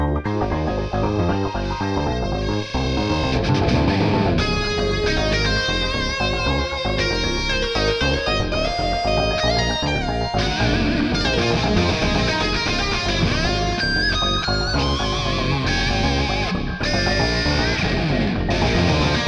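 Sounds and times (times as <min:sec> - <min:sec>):
guitar solo: 0:00.2 - 0:19.2.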